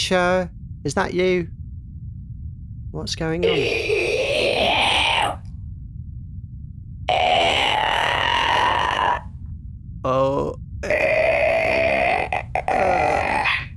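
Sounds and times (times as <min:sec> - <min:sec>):
speech: 0:00.1 - 0:01.6, 0:02.9 - 0:04.0
cat coughing up a fur ball: 0:03.4 - 0:05.4, 0:07.1 - 0:09.3, 0:10.8 - 0:13.7.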